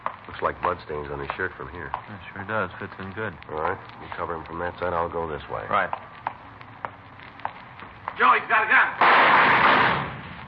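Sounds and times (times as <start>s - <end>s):
speech: 0.4s - 6.2s, 8.2s - 10.1s
handgun gunshots: 9.0s - 10.4s.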